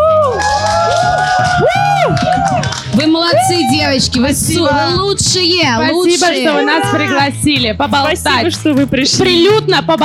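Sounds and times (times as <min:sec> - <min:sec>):
audience cheering and whooping for speakers at an evening talk event: 0:00.0 - 0:04.2
speech: 0:03.3 - 0:10.0.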